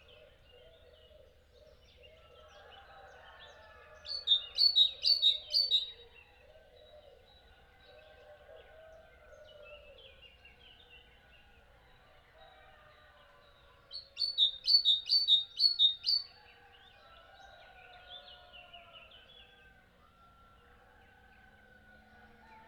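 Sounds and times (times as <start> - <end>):
bird chirping: 4.1 - 6.0, 14.0 - 16.3.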